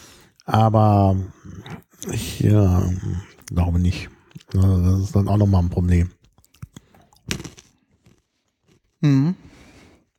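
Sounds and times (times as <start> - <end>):
speech: 0.5 - 6.2, 9.0 - 9.4
crunching a snack mix of peanuts and peas: 6.2 - 9.1.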